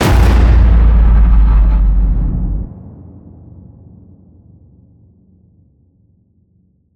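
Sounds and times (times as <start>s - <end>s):
distorted cinematic hit: 0.0s - 2.9s.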